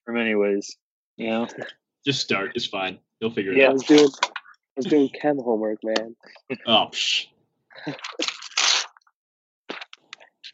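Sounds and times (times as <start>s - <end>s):
speech: 0.2s - 8.3s
paper ripping: 8.1s - 9.0s.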